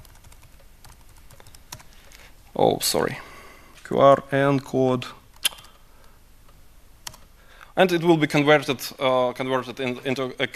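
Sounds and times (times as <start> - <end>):
typing on a computer keyboard: 0.0 - 2.0, 7.0 - 7.3
speech: 2.6 - 3.3, 3.9 - 5.2, 7.8 - 10.5.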